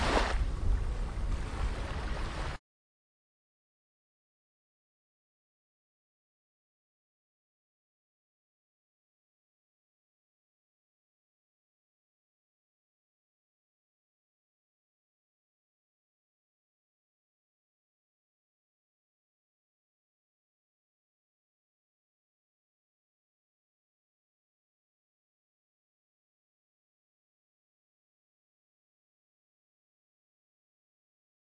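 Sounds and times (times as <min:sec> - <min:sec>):
sea waves: 0:00.0 - 0:02.6.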